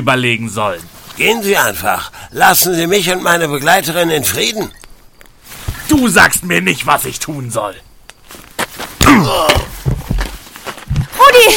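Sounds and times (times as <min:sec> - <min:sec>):
speech: 0:00.0 - 0:04.8, 0:05.9 - 0:07.9, 0:09.1 - 0:09.6
softer knocks and shuffles: 0:00.6 - 0:11.5
strained, pained groan: 0:09.0 - 0:09.8
heavy thwack of a blow to the back of a man's head: 0:09.0 - 0:10.0.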